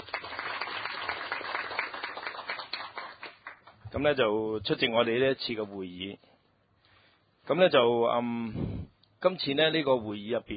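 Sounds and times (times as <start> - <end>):
audience applause: 0.0 - 3.7
speech: 3.9 - 6.3, 7.5 - 10.5.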